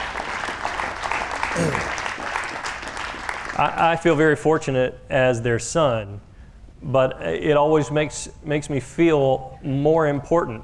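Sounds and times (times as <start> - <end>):
audience clapping: 0.0 - 3.8
speech: 1.6 - 2.0, 3.6 - 10.6.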